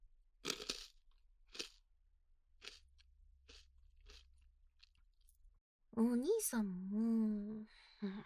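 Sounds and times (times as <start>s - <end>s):
chewing crunchy senbei rice crackers served as a tea snack: 0.4s - 1.9s, 2.5s - 5.4s
speech: 6.0s - 8.2s.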